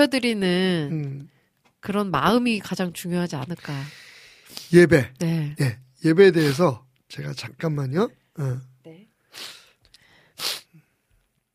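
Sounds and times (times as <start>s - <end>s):
speech: 0.0s - 8.7s, 9.3s - 9.6s
person sneezing: 6.4s - 6.7s, 10.4s - 10.8s.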